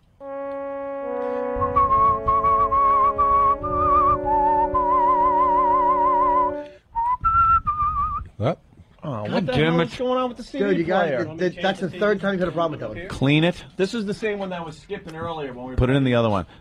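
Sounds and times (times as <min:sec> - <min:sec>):
soft accompaniment: 0:00.0 - 0:06.8
person whistling a show-tune melody: 0:00.5 - 0:08.3
speech: 0:08.4 - 0:08.6, 0:09.2 - 0:16.5.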